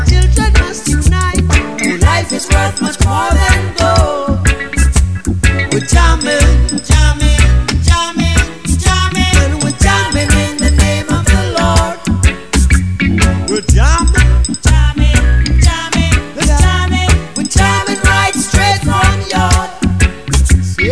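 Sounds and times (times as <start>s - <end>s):
musical jam: 0.0s - 20.8s.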